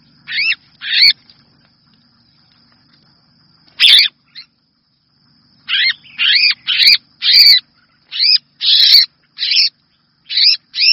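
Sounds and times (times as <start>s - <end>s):
red-whiskered bulbul distress call: 0.2s - 1.2s, 3.8s - 4.6s, 5.6s - 10.9s.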